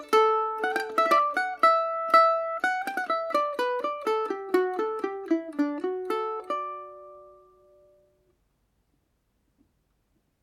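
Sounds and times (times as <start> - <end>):
mandolin playing a polka in D major: 0.0 - 8.1.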